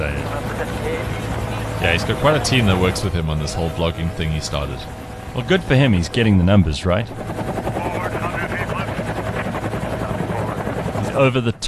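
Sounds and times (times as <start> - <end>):
speech: 0.0 - 7.7, 11.2 - 11.6
helicopter hovering: 0.0 - 11.6.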